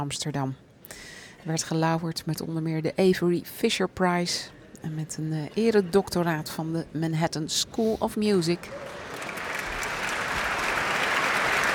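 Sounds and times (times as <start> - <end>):
speech: 0.0 - 9.0
concert audience applause: 8.7 - 11.7.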